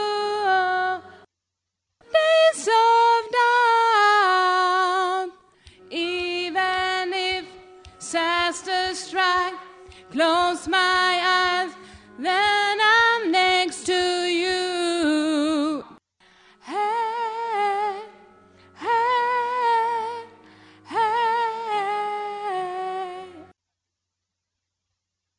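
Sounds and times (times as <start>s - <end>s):
soprano voice part singing: 0.0s - 1.3s, 2.0s - 16.0s, 16.6s - 23.5s.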